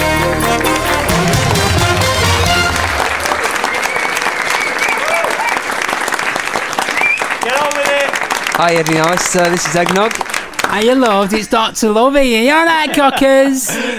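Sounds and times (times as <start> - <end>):
crowd noise at an awards show: 0.0 - 10.6
audience applause at an awards show greeting a comedy double act: 0.0 - 11.5
speech: 8.6 - 13.9.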